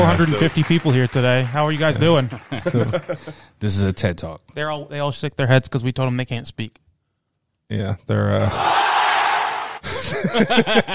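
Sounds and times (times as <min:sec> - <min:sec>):
audience of about 450 people cheering at a live recorded talk: 0:00.0 - 0:02.8, 0:08.5 - 0:09.8
speech: 0:00.0 - 0:06.8, 0:07.7 - 0:09.0, 0:10.2 - 0:10.9
people chuckling: 0:02.1 - 0:03.5, 0:09.8 - 0:10.9.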